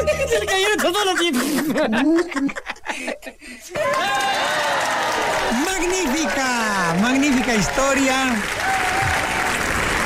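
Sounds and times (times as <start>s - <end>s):
laughter: 0.0s - 4.7s
speech: 0.0s - 9.1s
audience applause: 3.7s - 10.0s.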